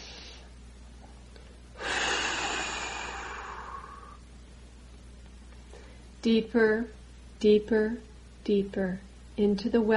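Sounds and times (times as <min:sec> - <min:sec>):
deep breath during guided meditation: 0:01.8 - 0:04.2
speech: 0:06.2 - 0:09.9.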